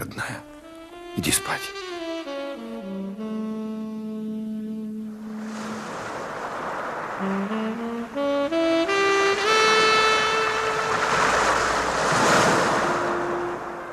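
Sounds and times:
rising sustained musical tones: 0.2 - 6.2, 7.0 - 13.9
speech: 1.2 - 1.9
ocean surf at high tide: 4.3 - 13.9.

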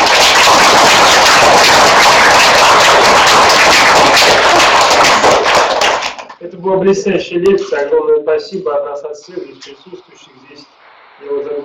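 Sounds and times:
audience applause after a lecture: 0.0 - 6.4
speech: 6.6 - 11.6.

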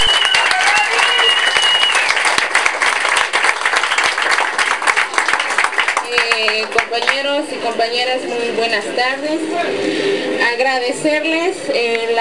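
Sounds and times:
faint whistle: 0.0 - 2.2
audience applause at an anniversary gathering: 0.0 - 7.2
speech: 7.4 - 12.1.

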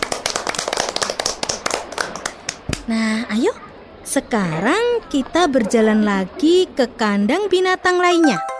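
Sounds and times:
kindergarten children clapping for a classmate: 0.0 - 2.9
speech: 2.9 - 8.5.

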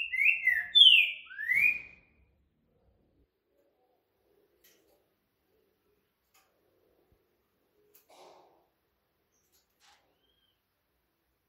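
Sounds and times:
green-winged saltator whistling: 0.0 - 2.1, 10.2 - 10.6.

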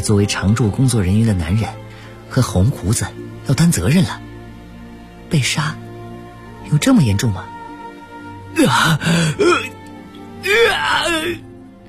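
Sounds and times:
speech: 0.0 - 4.3, 5.3 - 5.8, 6.7 - 7.5, 8.6 - 9.7, 10.4 - 11.5
heart-rending wail of agony from a room: 8.6 - 9.8, 10.4 - 11.4.

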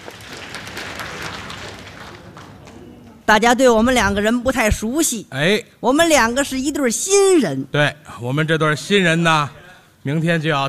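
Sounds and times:
audience applause: 0.0 - 3.3
speech: 3.3 - 10.6.

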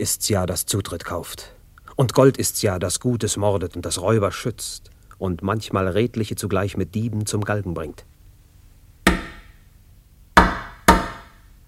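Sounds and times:
speech: 0.0 - 8.1
knocking on a door: 9.1 - 9.4, 10.4 - 11.3.

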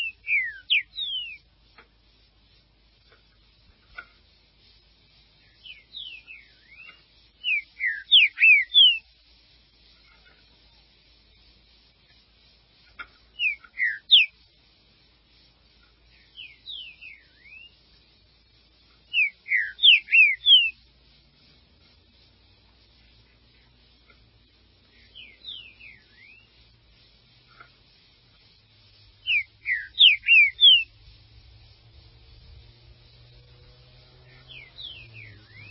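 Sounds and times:
green-winged saltator song: 0.0 - 1.5, 5.4 - 9.1, 13.3 - 14.4, 16.1 - 17.9, 19.1 - 20.8, 24.9 - 26.8, 29.2 - 31.0, 32.3 - 35.6.

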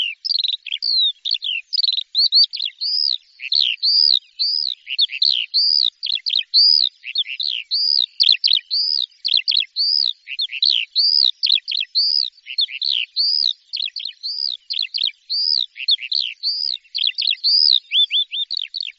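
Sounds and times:
bird song: 0.0 - 18.9.

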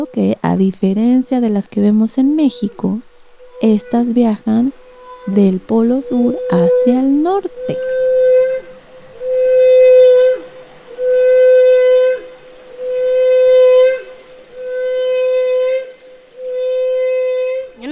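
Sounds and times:
speech: 0.0 - 8.0
whale song: 0.0 - 17.9.

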